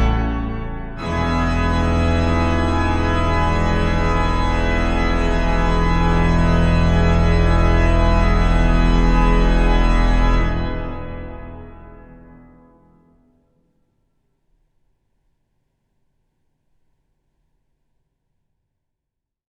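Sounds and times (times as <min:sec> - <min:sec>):
organ fanfare: 0:00.0 - 0:12.5.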